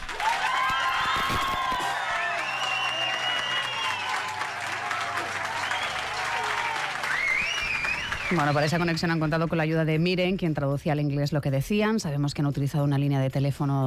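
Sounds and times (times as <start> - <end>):
audience applause and cheering: 0.0 - 9.3
speech: 8.3 - 13.8.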